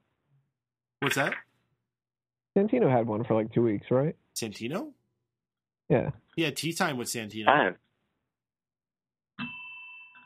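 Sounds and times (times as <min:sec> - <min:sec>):
speech: 0:01.1 - 0:01.4, 0:02.6 - 0:05.0, 0:05.9 - 0:07.8
doorbell ringing: 0:09.4 - 0:10.2.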